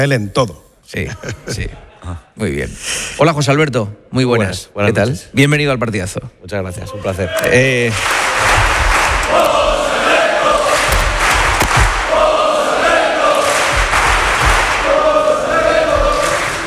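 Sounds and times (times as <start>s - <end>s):
speech: 0.0s - 8.7s
crowd chanting: 7.4s - 16.6s.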